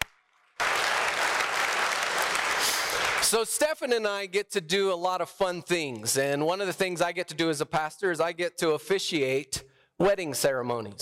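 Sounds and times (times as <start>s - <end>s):
audience applause: 0.0s - 3.3s
speech: 3.3s - 11.0s.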